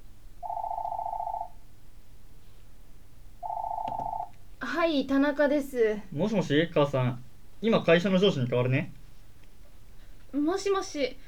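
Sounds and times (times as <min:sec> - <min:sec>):
home telephone ringing: 0:00.4 - 0:01.6, 0:03.4 - 0:04.4
speech: 0:04.8 - 0:09.0, 0:10.4 - 0:11.2.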